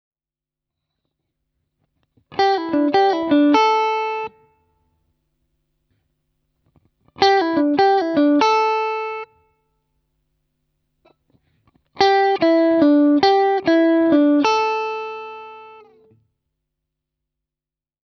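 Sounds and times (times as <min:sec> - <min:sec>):
guitar lick: 0:02.3 - 0:04.4, 0:07.2 - 0:09.3, 0:12.0 - 0:16.1.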